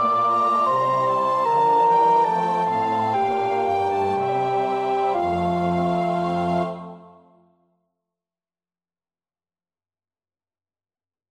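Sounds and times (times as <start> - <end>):
soprano practising a choir part: 0.0 - 7.4.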